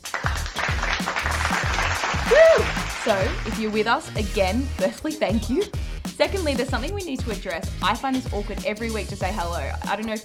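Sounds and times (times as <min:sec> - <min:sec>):
applause: 0:00.0 - 0:03.9
speech: 0:03.1 - 0:10.2.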